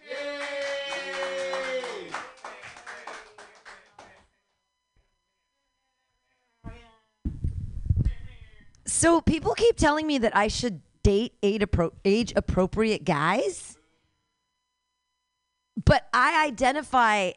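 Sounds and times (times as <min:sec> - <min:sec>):
drawn-out vocal cheer: 0:00.0 - 0:03.1
scattered audience clapping: 0:00.0 - 0:04.3
speech: 0:09.0 - 0:13.7, 0:15.8 - 0:17.3.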